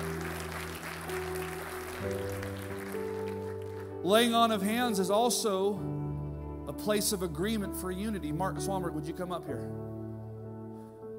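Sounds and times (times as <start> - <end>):
audience applause: 0.0 - 4.0
speech: 2.0 - 2.3, 4.0 - 6.0, 6.7 - 9.9.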